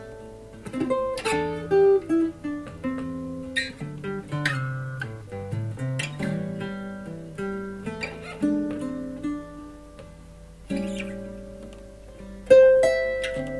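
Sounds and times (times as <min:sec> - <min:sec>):
Telecaster electric guitar tritone solo: 0:00.0 - 0:13.5.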